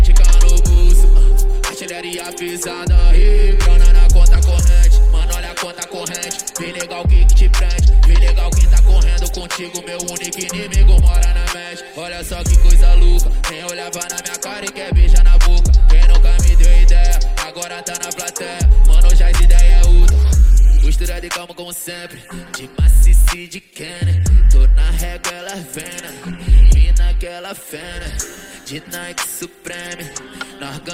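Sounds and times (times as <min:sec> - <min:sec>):
deep bass: 0:00.0 - 0:01.7, 0:02.9 - 0:05.6, 0:07.1 - 0:09.5, 0:10.8 - 0:11.5, 0:12.3 - 0:13.5, 0:14.9 - 0:17.4, 0:18.6 - 0:21.3, 0:22.8 - 0:23.3, 0:24.0 - 0:25.2, 0:26.5 - 0:27.2.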